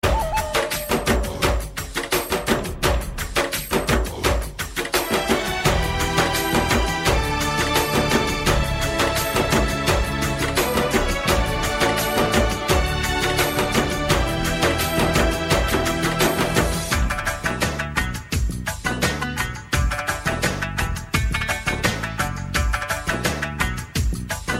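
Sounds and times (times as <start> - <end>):
instrumental music: 0.0 - 24.5.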